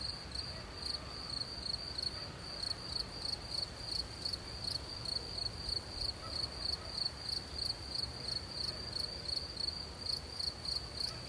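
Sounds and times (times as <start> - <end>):
cricket chirping: 0.0 - 11.2
soft wind in nature: 0.0 - 11.2.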